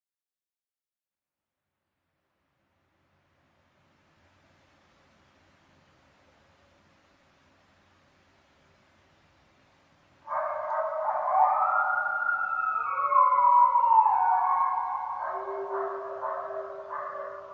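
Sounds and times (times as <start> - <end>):
coyote howling: 10.3 - 17.5.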